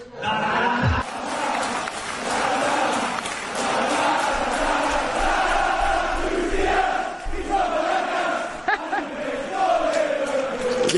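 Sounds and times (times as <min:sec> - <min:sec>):
laughter: 0:00.0 - 0:04.9, 0:07.3 - 0:09.8
stadium crowd singing a football chant: 0:00.2 - 0:10.9.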